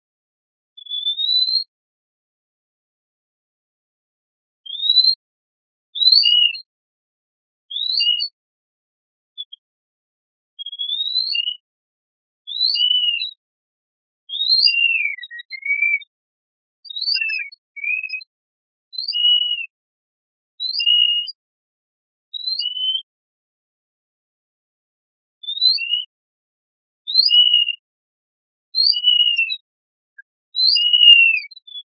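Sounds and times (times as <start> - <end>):
mouse song of sweeping whistles: 0.8 - 1.7, 4.6 - 5.2, 6.0 - 6.6, 7.7 - 8.3, 9.4 - 9.7, 10.6 - 11.7, 12.5 - 13.3, 14.3 - 16.2, 16.8 - 18.3, 18.9 - 19.8, 20.6 - 21.4, 22.4 - 23.1, 25.4 - 26.2, 27.2 - 27.8, 28.8 - 29.6, 30.6 - 31.9
speech: 6.2 - 6.4.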